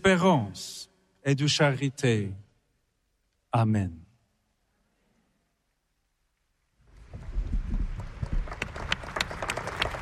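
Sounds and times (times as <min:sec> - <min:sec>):
speech: 0:00.0 - 0:02.4, 0:03.5 - 0:04.0
crowd applause: 0:07.6 - 0:09.9.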